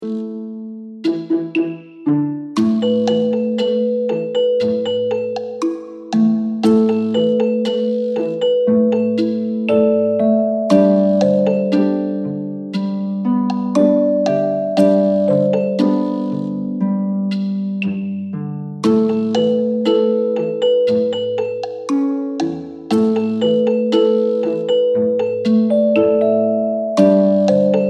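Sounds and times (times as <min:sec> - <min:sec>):
lullaby music: 0:00.0 - 0:27.8.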